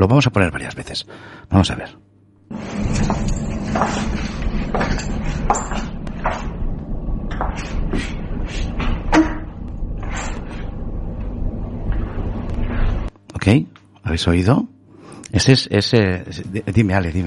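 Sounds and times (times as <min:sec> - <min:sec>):
speech: 0:00.0 - 0:05.6, 0:13.4 - 0:14.7, 0:15.3 - 0:17.2
irregular footsteps and knocks: 0:02.5 - 0:13.1
steady low rumble: 0:02.5 - 0:13.1.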